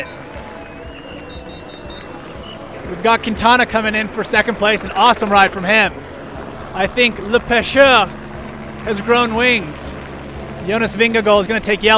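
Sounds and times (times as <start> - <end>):
roadside crowd cheering at stage finish: 0.0 - 5.7
speech: 2.9 - 6.1, 6.8 - 8.2, 8.8 - 10.0, 10.6 - 11.9.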